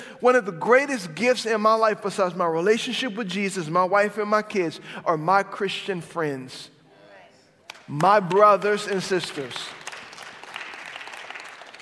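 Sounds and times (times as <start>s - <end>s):
speech: 0.2s - 6.7s, 7.9s - 9.8s
people clapping: 7.6s - 11.8s.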